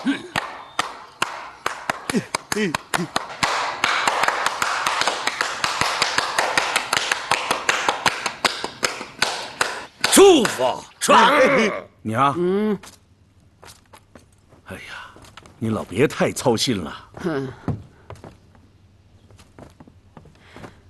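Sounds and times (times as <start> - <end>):
sharp loud hand claps: 0.0 - 10.7
speech: 2.1 - 3.3, 10.2 - 13.0, 14.7 - 15.0, 15.6 - 17.7.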